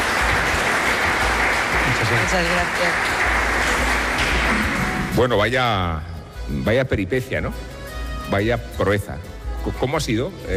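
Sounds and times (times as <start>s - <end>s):
audience applause: 0.0s - 5.2s
speech: 2.3s - 3.2s, 5.2s - 7.7s, 8.3s - 10.5s.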